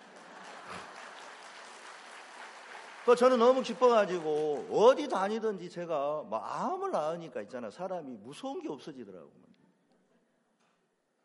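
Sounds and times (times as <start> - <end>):
audience clapping: 0.0 - 5.7
speech: 3.1 - 9.5.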